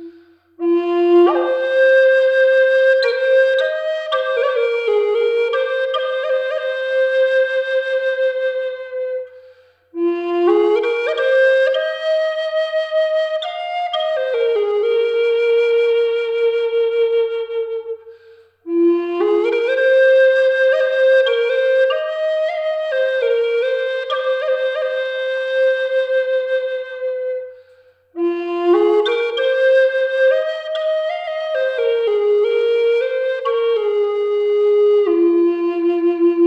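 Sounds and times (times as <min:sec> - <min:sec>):
Eastern Red Cedar flute in F sharp tuned to 432 Hz: 0:00.0 - 0:36.4.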